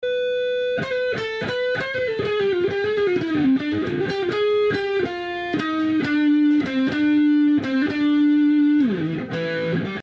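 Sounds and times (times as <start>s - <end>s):
guitar loop: 0.0s - 10.0s.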